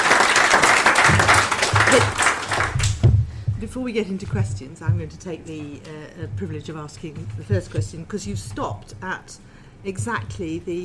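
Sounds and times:
room full of people applauding: 0.0 - 3.1
speech: 1.9 - 2.2, 3.8 - 10.8.

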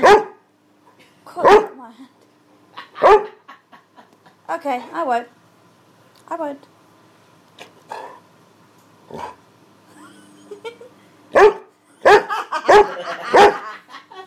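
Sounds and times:
dog barking: 0.0 - 0.4, 1.4 - 1.8, 3.0 - 3.4, 11.4 - 13.7
laughter: 2.7 - 4.5, 9.9 - 11.0, 12.0 - 14.2
speech: 4.5 - 5.4, 6.3 - 6.7.

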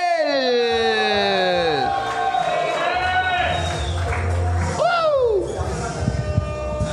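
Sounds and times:
audience cheering: 0.0 - 6.9
audience applause: 1.3 - 6.0.

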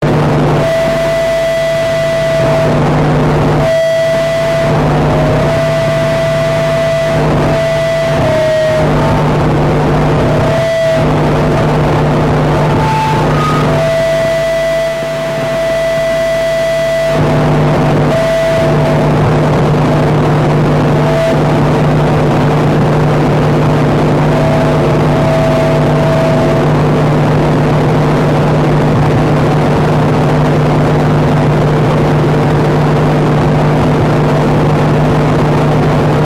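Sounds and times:
feedback from four distortion pedals at once: 0.0 - 36.2.

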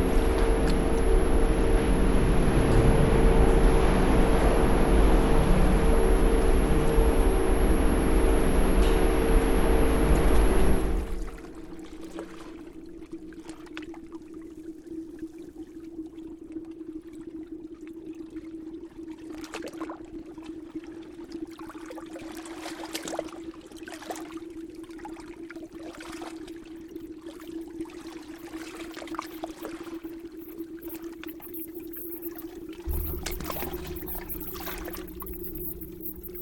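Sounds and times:
binaural soundscape: 0.0 - 11.4, 29.3 - 36.4.

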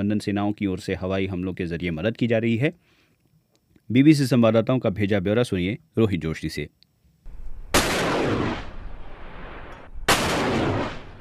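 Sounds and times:
speech: 0.0 - 3.0, 3.9 - 6.8
rocket launchers firing in the Sinjar hills: 7.3 - 11.1.

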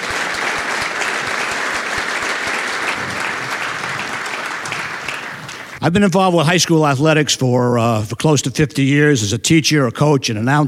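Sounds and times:
audience applause: 0.0 - 5.8
speech: 5.8 - 10.6.

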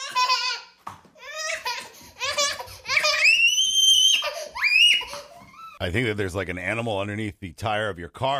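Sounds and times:
toddler screaming and fussing over a broom: 0.0 - 5.8
speech: 5.8 - 8.3.

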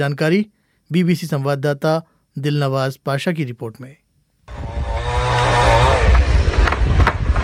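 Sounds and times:
speech: 0.0 - 4.6
motorized saw cutting down a large green tree in Mumbai's Aarey Colony: 4.5 - 7.3.

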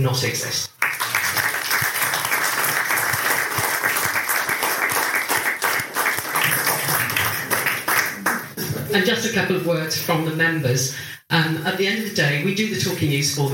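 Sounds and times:
speech: 0.0 - 0.8, 8.9 - 13.5
crowd applause: 0.8 - 8.6.

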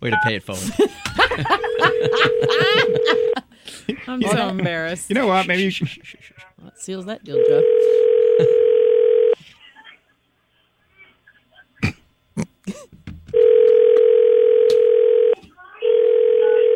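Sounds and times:
speech: 0.0 - 8.6
laughter: 0.6 - 6.6, 7.8 - 8.8
electronic telephone tone as call goes to voicemail: 2.2 - 3.4, 7.4 - 9.4, 13.4 - 16.7.

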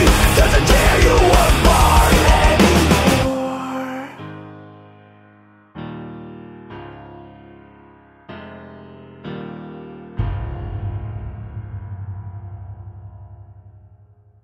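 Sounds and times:
metal music: 0.0 - 3.8, 10.2 - 14.2.

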